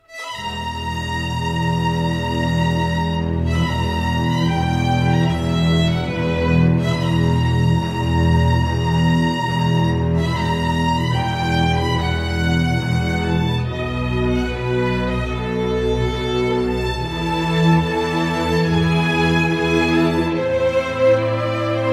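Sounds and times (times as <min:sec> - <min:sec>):
persecution background music: 0:00.0 - 0:21.9.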